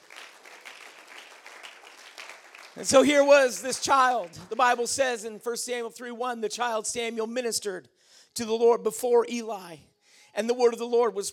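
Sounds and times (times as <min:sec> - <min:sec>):
audience clapping hands: 0:00.0 - 0:05.1
speech: 0:02.8 - 0:11.3.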